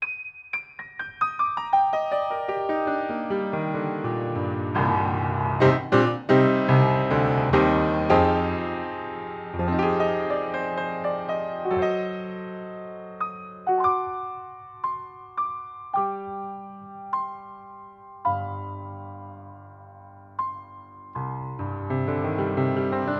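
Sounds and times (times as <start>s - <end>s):
piano: 0.0s - 23.1s.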